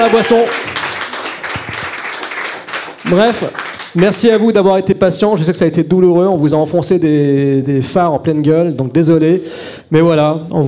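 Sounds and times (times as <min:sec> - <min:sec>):
speech: 0:00.0 - 0:00.7, 0:03.1 - 0:10.6
audience applause: 0:00.0 - 0:04.3.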